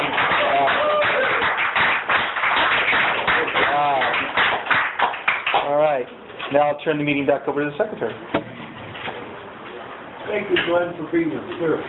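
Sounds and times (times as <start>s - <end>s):
crowd clapping: 0.0s - 6.0s
speech: 6.5s - 8.4s, 10.3s - 11.8s.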